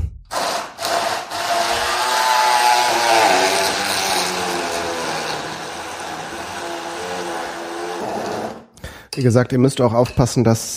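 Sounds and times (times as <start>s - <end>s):
electric blender mixing: 0.3s - 8.7s
speech: 9.2s - 10.7s.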